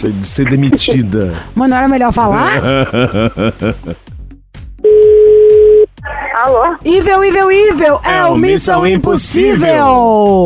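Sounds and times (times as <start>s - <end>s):
speech: 0.0s - 4.1s, 6.4s - 10.4s
laughter: 2.3s - 4.0s
telephone ringback tone: 4.8s - 5.9s.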